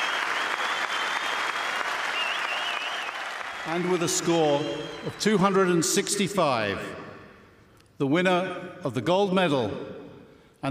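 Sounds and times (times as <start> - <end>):
large outdoor golf crowd cheering and clapping: 0.0 - 5.6
high whistles: 0.0 - 5.8
speech: 3.6 - 7.1, 8.0 - 10.0.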